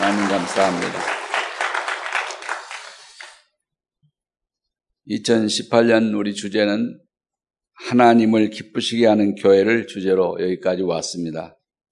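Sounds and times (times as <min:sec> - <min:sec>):
audience applauding: 0:00.0 - 0:03.4
speech: 0:00.4 - 0:01.2, 0:05.1 - 0:07.1, 0:07.8 - 0:11.6.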